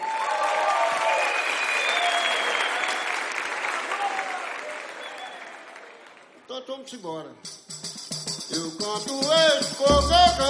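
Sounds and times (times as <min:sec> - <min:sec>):
audience applause: 0:00.0 - 0:06.4
speech: 0:06.7 - 0:07.9, 0:08.5 - 0:10.4.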